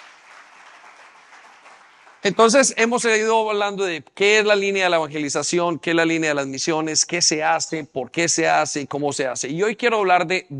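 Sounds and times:
audience applause: 0.0s - 2.7s
speech: 2.2s - 10.5s.

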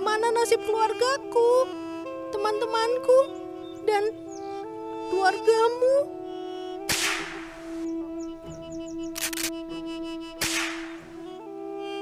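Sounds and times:
speech: 0.4s - 1.8s, 2.4s - 4.3s, 5.1s - 6.2s
repeated gunshots: 6.9s - 7.8s, 10.4s - 11.0s.

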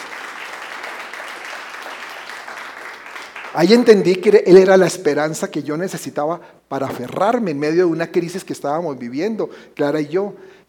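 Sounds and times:
crowd applauding: 0.0s - 3.9s
speech: 3.5s - 10.6s.

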